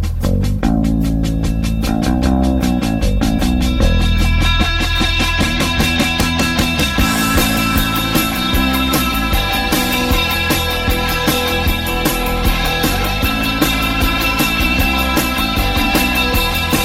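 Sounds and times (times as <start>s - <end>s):
theme music: 0.2s - 16.8s.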